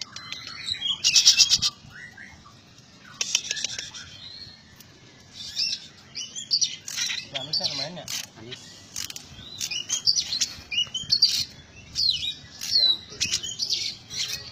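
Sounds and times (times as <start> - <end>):
small bird singing with whistled notes, buzzy trills and chattering: 0.0 - 14.5.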